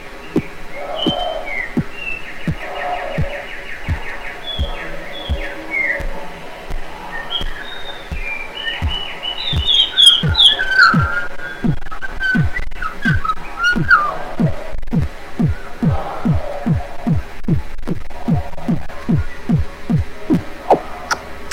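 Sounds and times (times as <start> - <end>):
drum machine: 0.4 - 13.2, 14.4 - 20.4.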